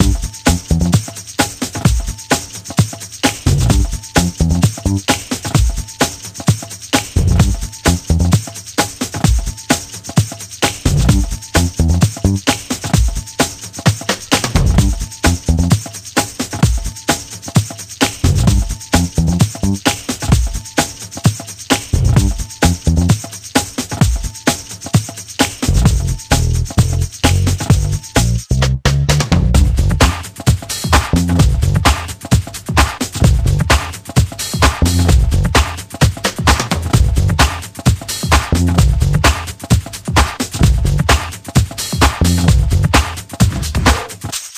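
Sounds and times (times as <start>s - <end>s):
bass: 0.0s - 1.0s, 3.4s - 5.8s, 7.0s - 8.4s, 10.7s - 12.7s, 14.3s - 15.8s, 18.1s - 20.6s, 21.9s - 23.2s, 25.6s - 32.2s, 32.8s - 34.0s, 34.6s - 37.7s, 38.3s - 41.4s, 42.0s - 44.0s
percussion: 0.0s - 44.5s.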